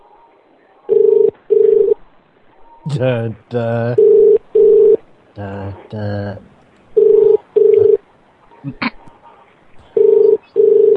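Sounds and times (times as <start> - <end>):
telephone ringing: 0.9 - 2.0, 4.0 - 5.0, 7.0 - 8.0, 10.0 - 10.9
speech: 2.8 - 4.2, 5.4 - 6.5, 8.6 - 8.9.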